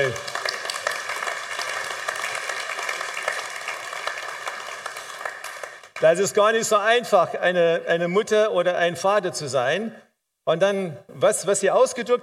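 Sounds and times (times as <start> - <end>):
audience applause: 0.0 - 6.0
speech: 6.0 - 12.2.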